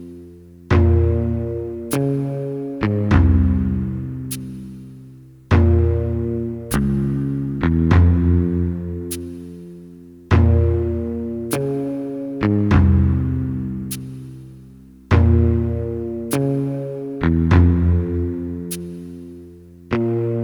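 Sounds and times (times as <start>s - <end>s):
minimal ethnic rainforest groove advertising music: 0.0s - 20.3s.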